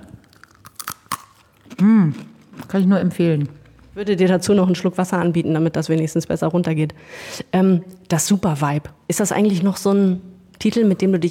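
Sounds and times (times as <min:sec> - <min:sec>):
crunching small dry pretzels: 0:00.0 - 0:03.0
speech: 0:01.8 - 0:11.2.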